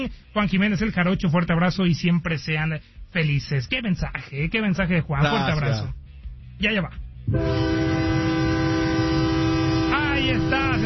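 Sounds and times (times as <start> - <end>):
speech: 0.0 - 6.0, 6.6 - 7.9, 10.2 - 10.8
train whistle blowing: 7.3 - 10.8.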